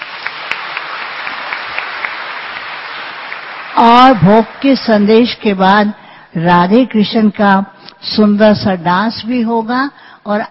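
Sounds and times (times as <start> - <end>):
audience clapping: 0.0 - 3.8
speech: 3.8 - 10.4.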